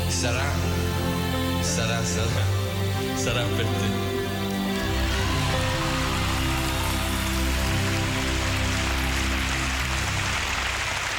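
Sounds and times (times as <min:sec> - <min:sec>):
speech: 0:00.2 - 0:00.7, 0:01.8 - 0:04.1
audience applause at Sanremo: 0:02.6 - 0:11.1.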